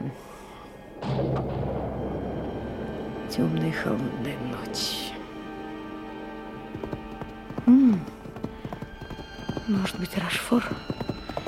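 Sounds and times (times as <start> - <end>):
thunder during a thunderstorm: 1.0 - 7.6
speech: 3.3 - 5.2, 9.7 - 11.1.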